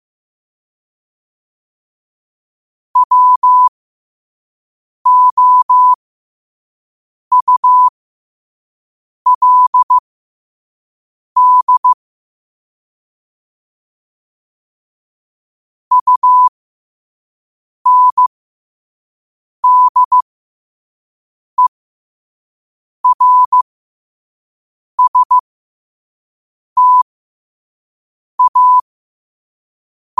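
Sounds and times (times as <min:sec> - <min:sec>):
morse code at 5 wpm: 0:03.0 - 0:03.7, 0:05.1 - 0:06.0, 0:07.3 - 0:07.9, 0:09.3 - 0:10.0, 0:11.4 - 0:12.0, 0:15.9 - 0:16.5, 0:17.9 - 0:18.3, 0:19.6 - 0:20.2, 0:23.0 - 0:23.6, 0:25.0 - 0:25.4, 0:26.8 - 0:27.1, 0:28.4 - 0:28.9.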